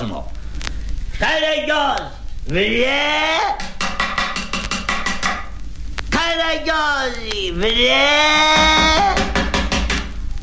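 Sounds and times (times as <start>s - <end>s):
speech: 0.0s - 0.4s, 1.2s - 3.8s, 6.3s - 9.3s
knocking on a door: 3.6s - 5.5s, 8.5s - 10.1s.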